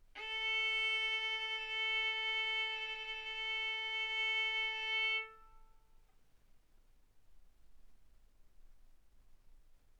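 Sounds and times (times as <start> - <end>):
violin bowed mezzo-forte on the A string, A4 and B4: 0.2 - 5.7.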